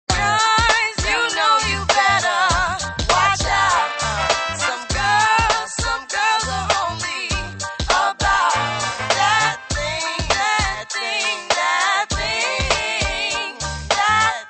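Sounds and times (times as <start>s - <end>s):
doo wop singing: 0.1s - 14.4s.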